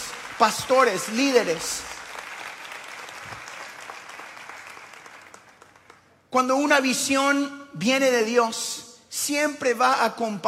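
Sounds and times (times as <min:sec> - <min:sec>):
large crowd applauding: 0:00.0 - 0:06.1
speech: 0:00.4 - 0:02.0, 0:06.3 - 0:10.4.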